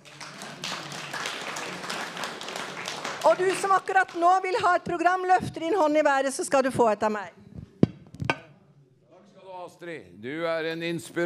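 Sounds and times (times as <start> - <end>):
audience applause: 0.0 - 4.6
speech: 3.2 - 7.4, 9.6 - 11.2.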